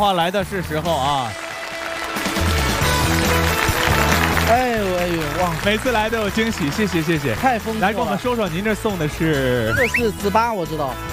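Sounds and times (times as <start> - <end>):
speech: 0.0 - 1.4, 4.5 - 11.1
music playing under applause: 0.0 - 11.1
studio audience applause: 0.9 - 8.7.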